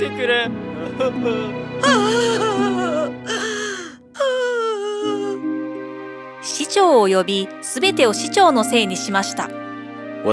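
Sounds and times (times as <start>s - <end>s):
speech: 0.0s - 3.5s, 6.8s - 10.3s
people crying and wailing: 1.8s - 5.4s.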